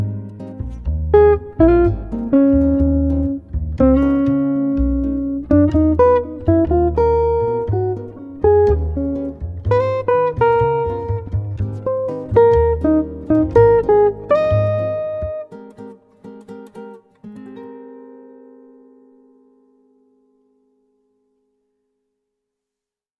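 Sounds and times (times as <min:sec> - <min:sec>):
study music beats: 0:00.0 - 0:17.4.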